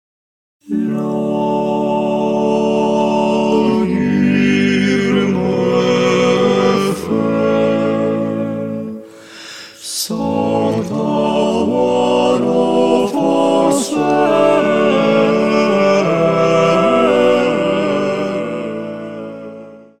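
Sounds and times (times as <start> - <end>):
vocal quartet singing: 0.6 - 19.9.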